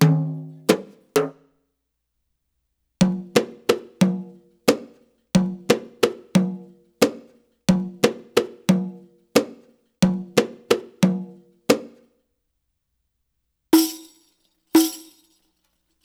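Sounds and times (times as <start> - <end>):
Arabic rhythm percussion: 0.0 - 1.4, 3.1 - 12.0, 13.8 - 15.4.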